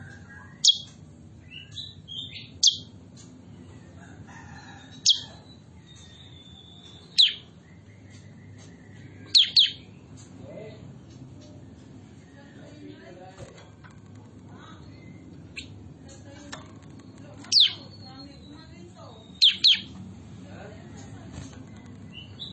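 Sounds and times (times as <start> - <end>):
bulbul chirping: 0.3 - 3.0, 4.9 - 10.0, 17.0 - 20.0.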